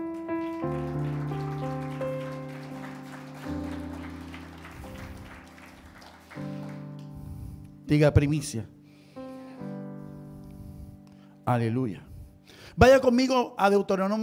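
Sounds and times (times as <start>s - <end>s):
audience applause: 0.0s - 7.2s
speech: 7.9s - 8.8s, 11.5s - 12.1s, 12.8s - 14.2s.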